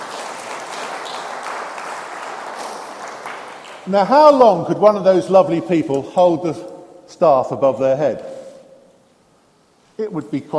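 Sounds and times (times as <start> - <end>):
crowd applauding: 0.0 - 4.4
speech: 3.9 - 8.3, 10.0 - 10.5.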